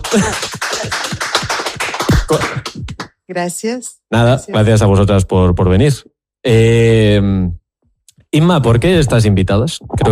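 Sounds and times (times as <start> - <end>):
applause from a small group for the guests: 0.0 - 3.1
speech: 0.1 - 0.6, 2.3 - 2.7, 3.3 - 7.6, 8.3 - 10.1.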